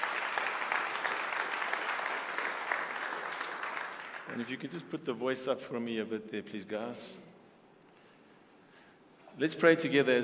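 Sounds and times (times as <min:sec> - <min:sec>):
audience applause: 0:00.0 - 0:04.5
speech: 0:04.4 - 0:07.3, 0:09.4 - 0:10.2.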